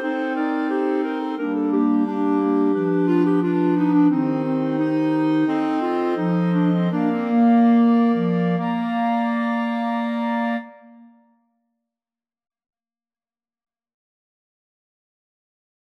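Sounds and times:
clarinet choir: 0.0 - 11.2.

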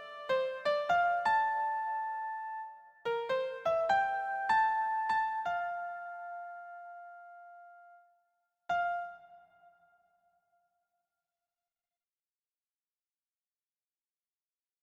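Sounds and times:
keyboard: 0.0 - 8.1, 8.7 - 10.1.

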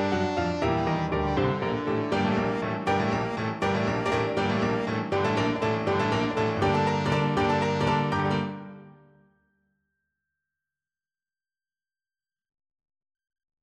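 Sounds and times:
trombone playing a symphony scherzo: 0.0 - 8.3.

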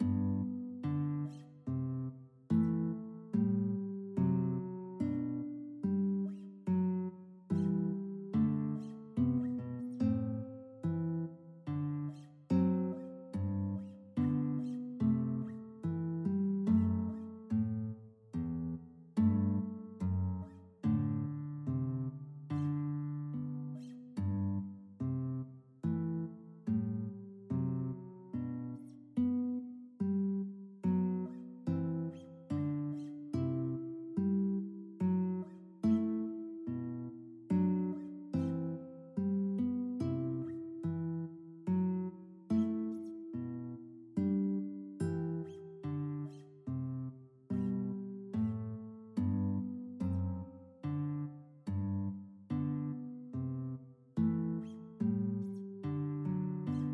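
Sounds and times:
guitar: 0.0 - 56.9.

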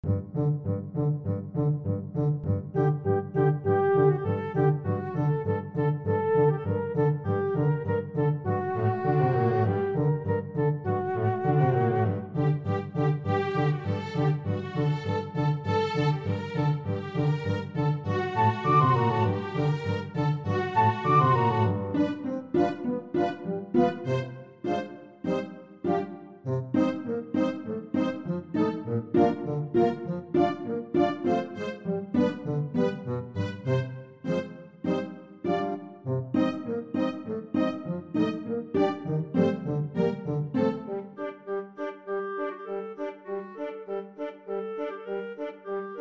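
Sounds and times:
oboe playing ballet music: 0.0 - 46.0.

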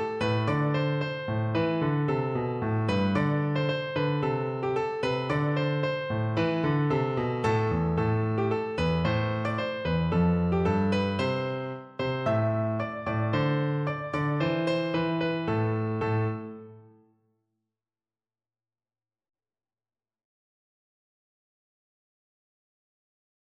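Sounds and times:
electric piano: 0.0 - 17.0.

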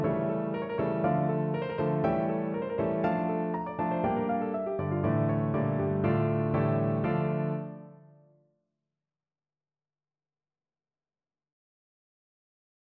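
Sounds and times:
baroque gavotte piano piece: 0.0 - 8.2.

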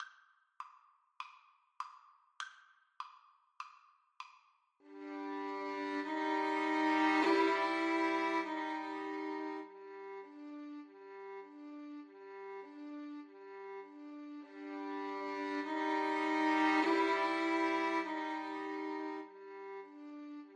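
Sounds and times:
violin duet: 4.9 - 20.5.

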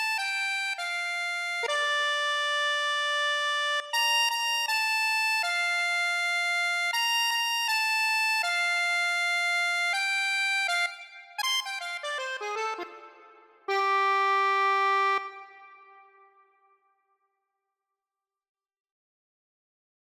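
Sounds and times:
jazzy birthday tune on accordion: 0.0 - 16.0.

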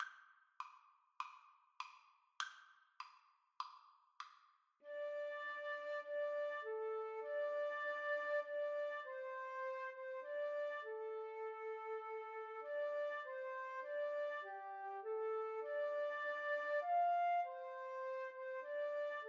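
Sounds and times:
flute duet: 4.8 - 19.2.

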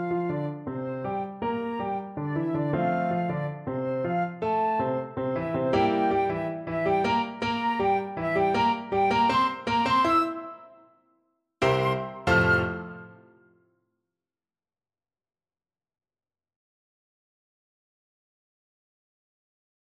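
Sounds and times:
salsa flute: 1.0 - 10.8, 11.6 - 13.4.

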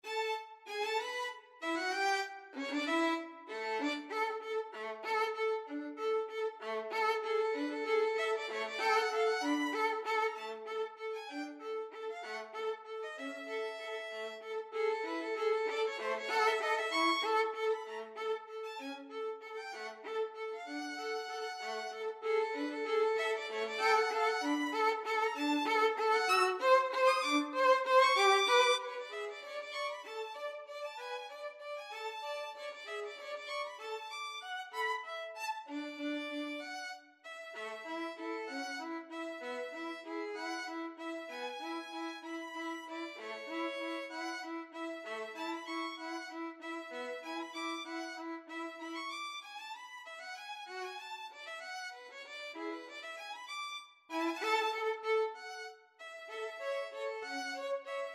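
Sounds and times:
violin duet: 0.0 - 58.1.

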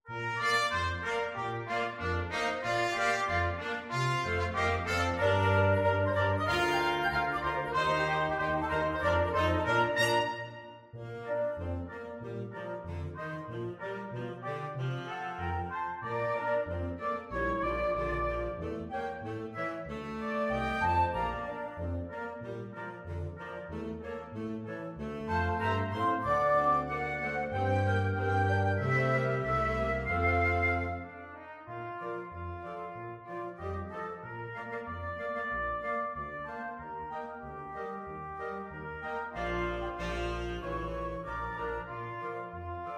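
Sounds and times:
flexible mixed ensemble of five players: 0.1 - 42.9.

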